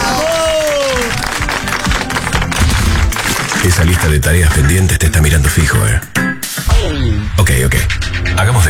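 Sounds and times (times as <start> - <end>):
crowd applauding: 0.0 - 4.7
speech: 3.6 - 6.2, 6.8 - 8.6.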